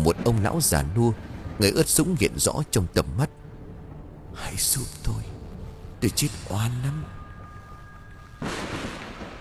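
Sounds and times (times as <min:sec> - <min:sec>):
speech: 0:00.0 - 0:03.4, 0:04.4 - 0:05.3, 0:06.0 - 0:07.2
deafening thunderclap: 0:00.0 - 0:04.3, 0:08.4 - 0:09.3.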